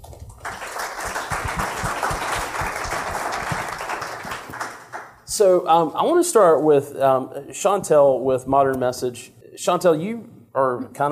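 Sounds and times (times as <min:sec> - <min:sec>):
crowd applauding: 0:00.0 - 0:05.2
speech: 0:05.4 - 0:11.1.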